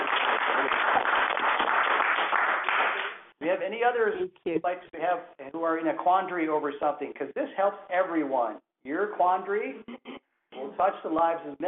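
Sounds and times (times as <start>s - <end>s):
audience applause: 0.0s - 3.3s
speech: 3.7s - 10.0s, 10.8s - 11.6s.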